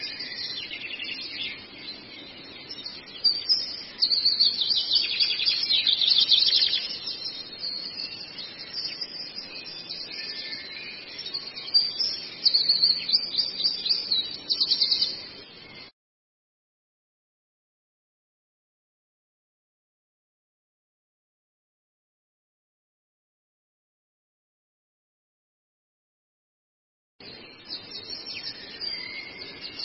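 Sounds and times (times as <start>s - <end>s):
Long-tailed shrike twittering song: 0.0s - 15.9s, 27.2s - 29.8s.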